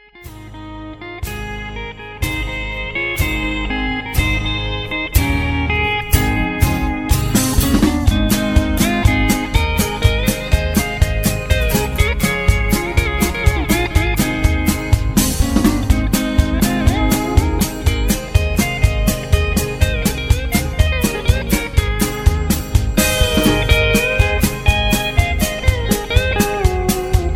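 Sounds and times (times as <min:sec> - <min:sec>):
instrumental music: 0:00.0 - 0:27.3.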